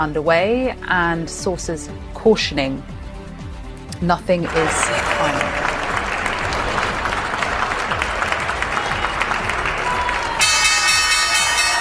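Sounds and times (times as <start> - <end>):
speech: 0.0 - 3.0, 4.0 - 5.7
applause: 4.4 - 11.7
cheering: 4.5 - 11.7
loud shrill stock exchange opening bell ringing: 10.4 - 11.7.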